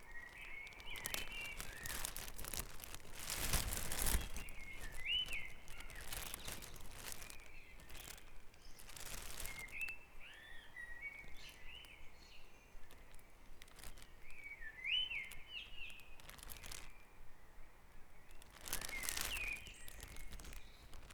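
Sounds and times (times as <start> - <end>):
faint crackles: 0.0 - 17.1, 18.2 - 21.1
bird song: 0.0 - 21.1.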